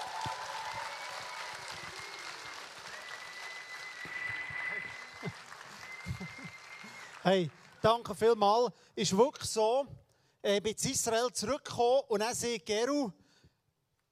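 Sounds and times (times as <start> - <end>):
audience applause: 0.0 - 8.2
speech: 7.2 - 13.2.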